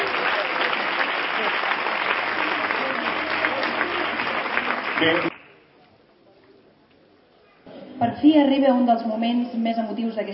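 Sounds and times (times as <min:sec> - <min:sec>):
audience applause: 0:00.0 - 0:05.5
speech: 0:05.0 - 0:05.3, 0:08.1 - 0:10.3.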